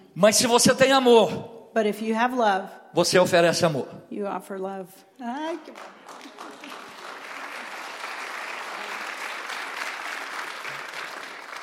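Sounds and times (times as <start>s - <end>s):
speech: 0.2s - 6.2s
audience clapping weakly: 5.6s - 11.6s.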